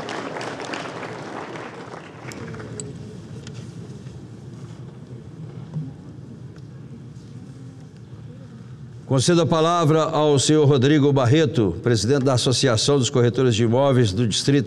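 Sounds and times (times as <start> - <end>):
applause: 0.0 - 2.9
speech: 9.1 - 14.6.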